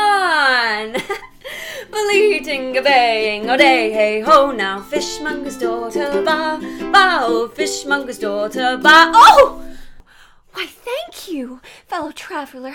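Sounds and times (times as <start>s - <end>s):
bard singing a cover: 2.1s - 9.7s
ukulele: 2.2s - 9.9s.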